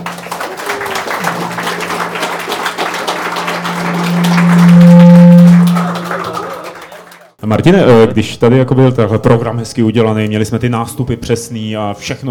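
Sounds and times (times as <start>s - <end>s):
audience applause: 0.0s - 7.3s
speech: 7.5s - 12.2s.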